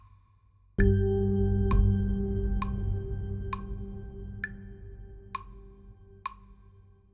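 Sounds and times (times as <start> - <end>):
backing track music: 0.8 - 6.5
metronome clicks: 0.8 - 6.5.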